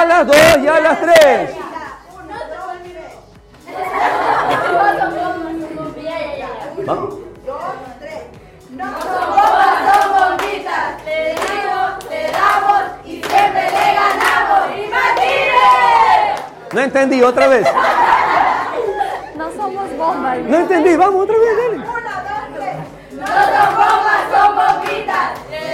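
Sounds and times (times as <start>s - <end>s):
speech: 0.2s - 1.6s, 16.8s - 18.1s, 20.1s - 21.9s
laughter: 3.7s - 7.3s, 17.0s - 24.2s
audience clapping: 8.9s - 17.3s, 23.1s - 25.7s.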